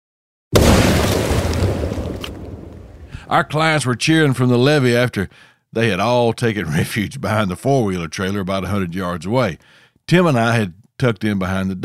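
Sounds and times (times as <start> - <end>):
explosive detonating with a large boom: 0.6 - 3.4
speech: 3.3 - 11.8.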